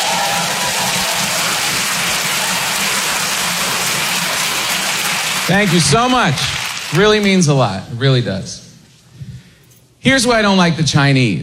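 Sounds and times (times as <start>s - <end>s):
audience applause: 0.0s - 7.6s
speech: 5.5s - 8.6s, 10.0s - 11.4s.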